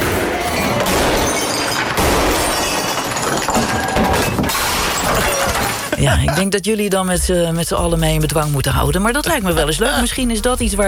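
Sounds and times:
glass smashing: 0.6 - 6.4
speech: 6.0 - 10.8.

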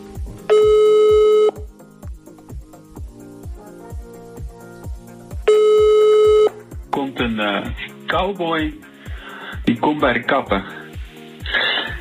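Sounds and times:
telephone ringback tones on a call to a recorded joke line: 0.5 - 1.7, 5.5 - 6.6
speech: 7.4 - 8.9, 9.8 - 10.8.

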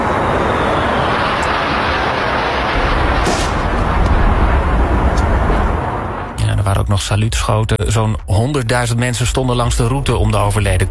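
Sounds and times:
military aircraft flypast: 0.0 - 6.4
speech: 7.0 - 10.9.

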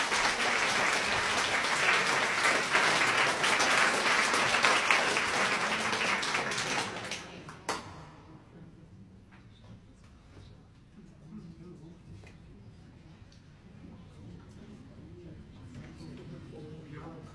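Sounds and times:
audience applause: 0.0 - 7.5.

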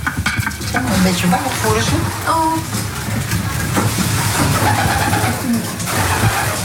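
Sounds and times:
steady rumbling background: 0.0 - 6.6
speech: 0.8 - 2.9, 4.6 - 6.4
pigeons cooing: 3.9 - 6.6.

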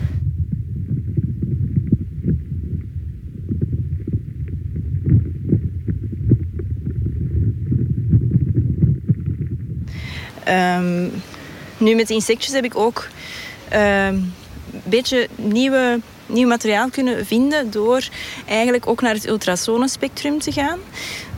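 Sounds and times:
creaking sounds of tree absorbing water: 0.4 - 9.9
speech: 10.5 - 21.3.

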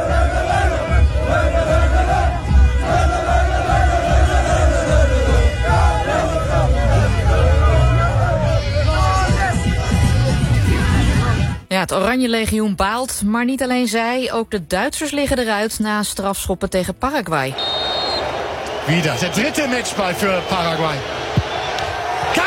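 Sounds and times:
street crowd of fans celebrating: 0.0 - 11.5, 17.5 - 22.4
speech: 11.9 - 17.8, 18.9 - 21.2
car horns honking: 17.5 - 18.3.

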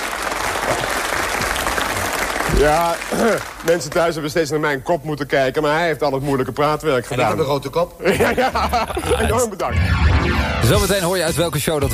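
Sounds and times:
audience applause: 0.0 - 4.1
speech: 2.6 - 11.9
laughter: 8.0 - 9.6.

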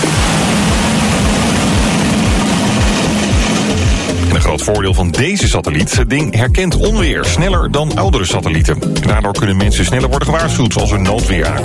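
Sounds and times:
rocket launch lifting off: 0.0 - 5.2
speech: 4.5 - 11.6.

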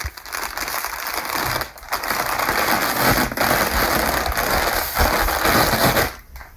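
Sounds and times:
pattern paper unrolling: 0.0 - 6.4.

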